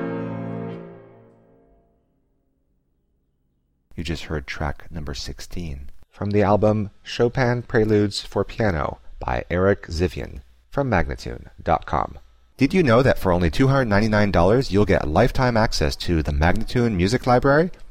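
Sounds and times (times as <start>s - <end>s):
piano prelude in b flat minor: 0.0s - 2.0s
person speaking: 3.9s - 17.8s.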